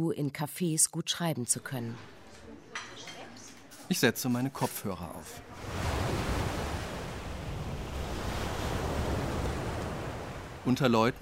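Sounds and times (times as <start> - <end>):
speech: 0.0 - 2.2, 3.9 - 5.9, 10.6 - 11.1
ocean waves: 4.5 - 11.1.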